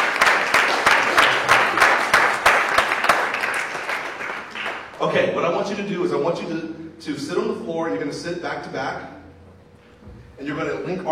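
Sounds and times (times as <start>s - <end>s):
audience applause: 0.0s - 5.0s
speech: 5.0s - 9.1s, 10.4s - 11.1s.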